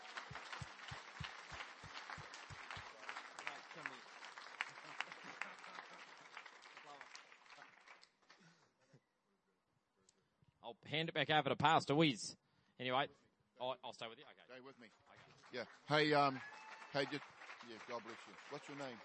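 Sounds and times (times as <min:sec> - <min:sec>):
audience clapping: 0:00.0 - 0:08.7, 0:15.0 - 0:19.0
speech: 0:10.7 - 0:19.0.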